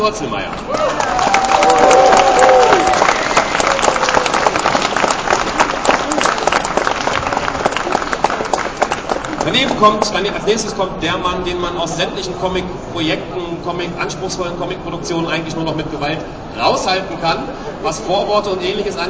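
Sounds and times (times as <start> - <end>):
speech: 0.0 - 2.2, 9.4 - 19.0
audience applause: 0.6 - 10.1
murmur of voices: 4.5 - 19.0.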